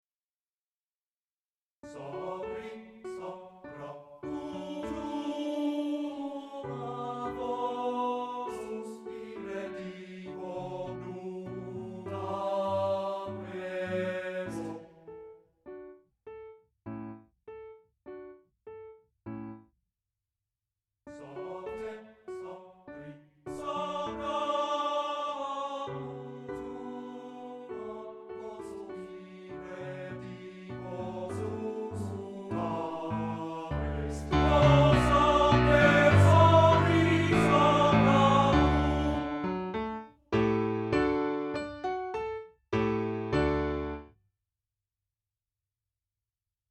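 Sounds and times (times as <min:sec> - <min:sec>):
art song for voice and piano: 0:01.8 - 0:19.6, 0:21.1 - 0:44.1.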